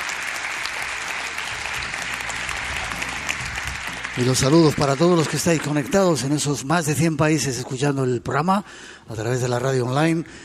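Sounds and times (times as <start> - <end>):
theatre audience applause: 0.0 - 6.4
speech: 4.2 - 10.4.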